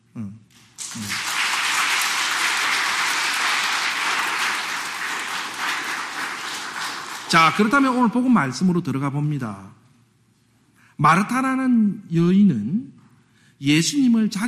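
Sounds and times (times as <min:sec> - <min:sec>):
audience applause: 0:00.8 - 0:08.3
speech: 0:07.3 - 0:09.8, 0:11.0 - 0:12.9, 0:13.6 - 0:14.4.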